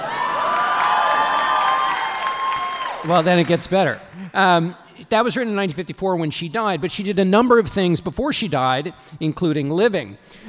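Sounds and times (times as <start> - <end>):
audience cheering and whooping: 0.0 - 3.6
speech: 3.0 - 10.4.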